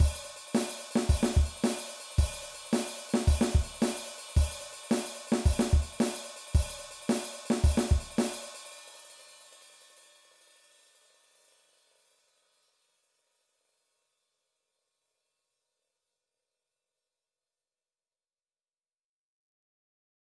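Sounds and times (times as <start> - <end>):
punk drum beat: 0.0 - 8.6.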